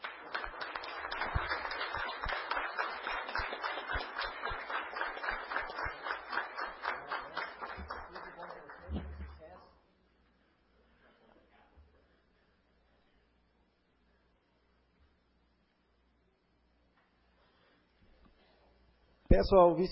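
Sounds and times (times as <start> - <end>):
audience applause: 0.0 - 9.6.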